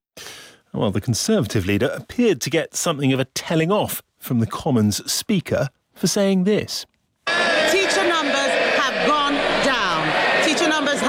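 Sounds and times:
speech: 0.7s - 6.9s
MPs cheering and shouting in the Commons: 7.3s - 11.0s.

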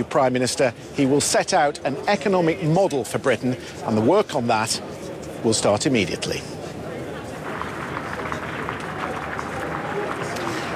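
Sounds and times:
speech: 0.0s - 6.6s
crowd cheering and applauding in Downing Street: 7.4s - 10.7s.

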